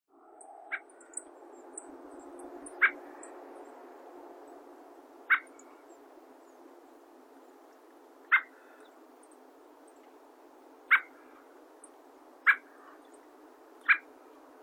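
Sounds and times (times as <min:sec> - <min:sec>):
dusky thrush calling in Chichibu: 0:02.7 - 0:03.3, 0:05.3 - 0:05.7, 0:08.3 - 0:08.9, 0:10.9 - 0:11.4, 0:12.4 - 0:13.1, 0:13.8 - 0:14.1.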